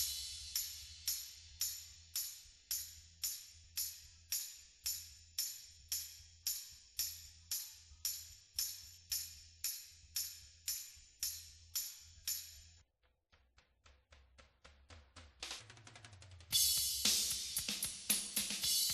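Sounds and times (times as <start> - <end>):
cymbals: 0.0 - 12.4, 16.5 - 18.9.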